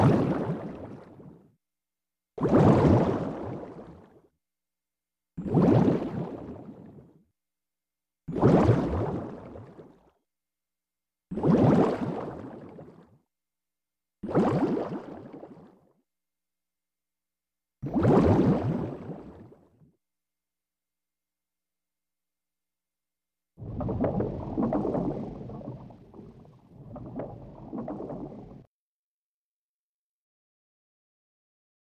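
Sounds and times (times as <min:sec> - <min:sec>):
bubbles released: 0:00.0 - 0:01.3, 0:02.4 - 0:04.1, 0:05.4 - 0:06.8, 0:08.3 - 0:10.0, 0:11.3 - 0:13.0, 0:14.2 - 0:15.8, 0:17.8 - 0:19.6, 0:23.6 - 0:28.7.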